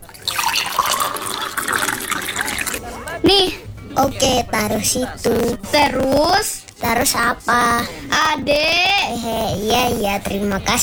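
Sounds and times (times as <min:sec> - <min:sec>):
water poured into a glass: 0:00.0 - 0:03.2
laughter: 0:00.0 - 0:10.8
speech: 0:03.3 - 0:10.8.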